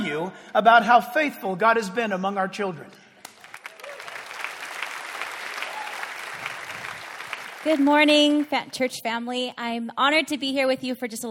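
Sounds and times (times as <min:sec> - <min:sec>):
speech: 0:00.1 - 0:03.0, 0:07.6 - 0:11.2
church congregation applause: 0:03.2 - 0:08.6.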